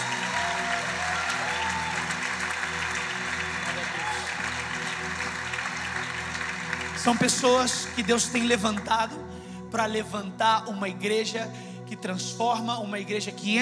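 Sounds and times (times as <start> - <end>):
audience applause: 0.0 - 8.9
music: 0.0 - 13.6
speech: 7.0 - 13.6.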